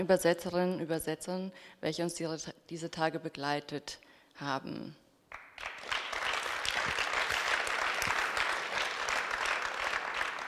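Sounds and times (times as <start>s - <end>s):
speech: 0.0s - 5.0s
audience applause: 5.3s - 10.4s.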